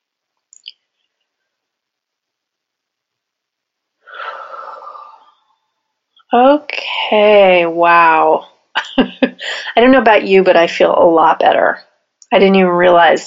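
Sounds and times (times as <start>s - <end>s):
deep breath taken during a guided calming exercise: 4.0s - 5.6s
speech: 6.3s - 13.2s.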